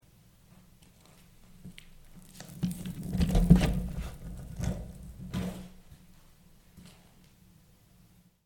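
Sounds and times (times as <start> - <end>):
skateboard rolling: 2.2 - 5.8.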